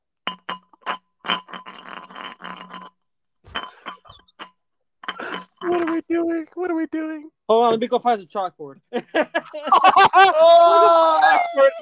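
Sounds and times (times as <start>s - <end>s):
glass bottle bottoms rubbed together: 0.2s - 6.4s
speech: 5.8s - 11.8s
laughter: 8.9s - 11.8s.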